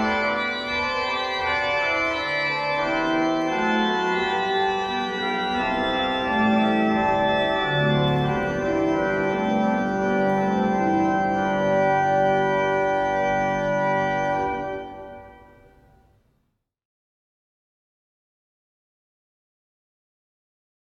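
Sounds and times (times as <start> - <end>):
organ piece: 0.0 - 16.2.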